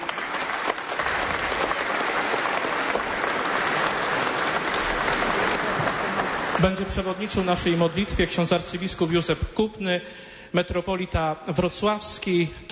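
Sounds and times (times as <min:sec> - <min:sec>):
audience applause: 0:00.0 - 0:07.5
speech: 0:06.6 - 0:12.7.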